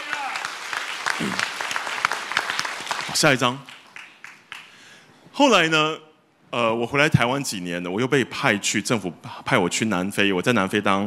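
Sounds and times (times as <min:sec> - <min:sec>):
audience clapping: 0:00.0 - 0:04.9
speech: 0:01.2 - 0:01.5, 0:03.1 - 0:03.7, 0:05.4 - 0:11.0.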